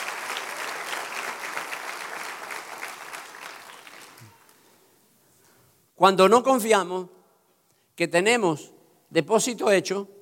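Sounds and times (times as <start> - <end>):
audience applauding: 0.0 - 4.7
speech: 6.0 - 7.2, 8.0 - 10.2.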